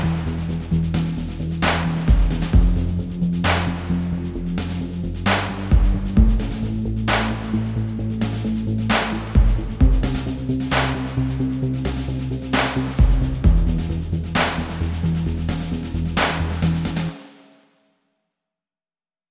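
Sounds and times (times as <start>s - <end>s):
bass: 0.0s - 17.2s
drums: 0.0s - 17.7s.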